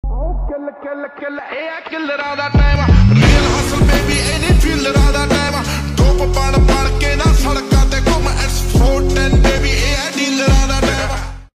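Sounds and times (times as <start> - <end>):
Punjabi song: 2.3 - 11.2.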